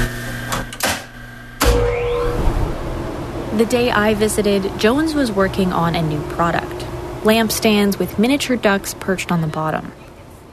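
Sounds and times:
mechanical clunks: 0.5 - 3.5
speech: 3.6 - 10.1.

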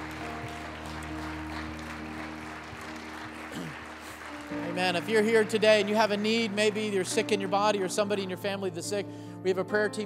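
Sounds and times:
audience applause and cheering with scattered whoops: 0.0 - 7.6
speech: 4.8 - 10.0.

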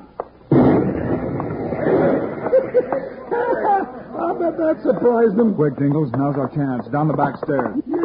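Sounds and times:
bomb explosion rumbling: 0.5 - 2.9
laughter: 1.8 - 5.8
speech: 4.5 - 8.0.

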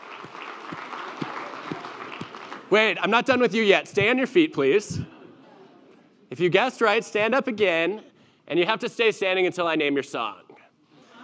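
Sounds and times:
crowd applauding: 0.0 - 3.4
speech: 2.7 - 5.1, 6.4 - 10.4.

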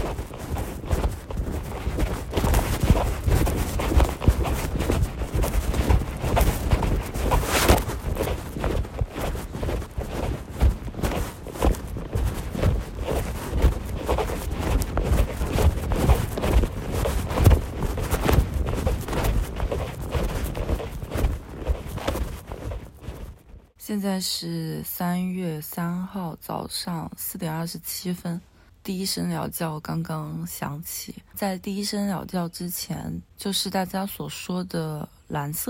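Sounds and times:
footsteps crunching on snow: 0.0 - 23.6
speech: 23.9 - 35.6.

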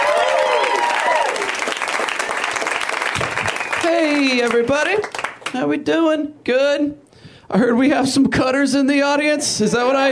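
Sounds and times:
people cheering: 0.0 - 4.3
comedy club audience clapping: 0.0 - 5.6
speech: 4.4 - 10.0.

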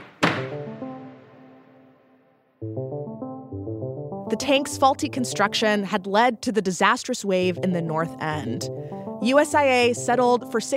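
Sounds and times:
gavel knock: 0.0 - 1.0
speech: 4.3 - 10.7.

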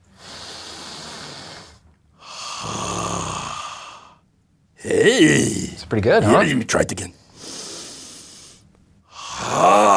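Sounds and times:
deep belly breathing: 0.0 - 4.3, 7.3 - 9.9
speech: 2.6 - 3.0, 4.8 - 7.2.

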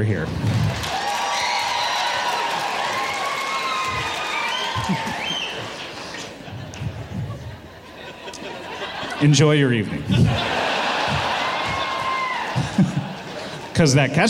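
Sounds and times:
speech: 0.0 - 1.0, 4.8 - 5.8, 9.2 - 10.6, 13.8 - 14.2
live comedy-show audience applauding and cheering: 0.3 - 7.4, 10.2 - 13.8
comedy-show audience whoops and shouts: 0.8 - 5.8, 11.0 - 12.8
laughter: 2.3 - 13.9.

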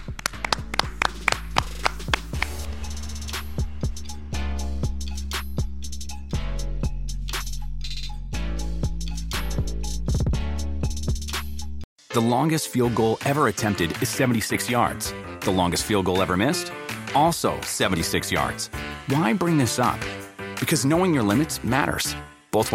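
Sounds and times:
hands clapping: 0.0 - 2.7
musical backing with sustained tones: 0.0 - 22.7
speech: 12.2 - 22.7.

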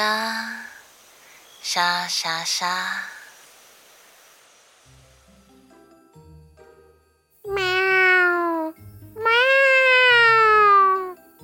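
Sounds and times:
speech: 1.7 - 3.2
cat meowing: 7.5 - 11.2.

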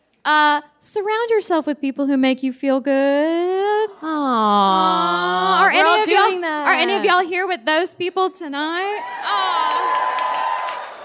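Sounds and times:
speech: 0.2 - 9.6
audience clapping and cheering: 8.7 - 11.0
high whoop: 9.0 - 11.0.

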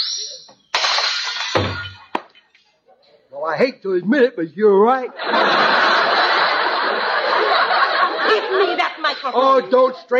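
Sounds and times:
dishes smashing as tablecloth is pulled: 0.7 - 2.5
speech: 3.4 - 5.7, 9.2 - 10.1
laughter: 5.0 - 10.1.

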